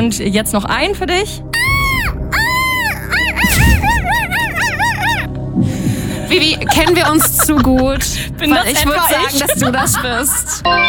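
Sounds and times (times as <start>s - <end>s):
speech: 0.0s - 1.6s, 6.3s - 10.8s
person imitating a seagull call: 1.6s - 5.3s
laughter: 2.9s - 5.3s, 6.3s - 10.6s.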